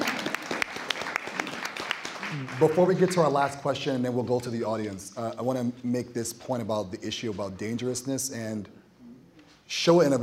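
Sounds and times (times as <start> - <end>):
audience applause: 0.0 - 3.3
speech: 2.3 - 8.8, 9.7 - 10.2.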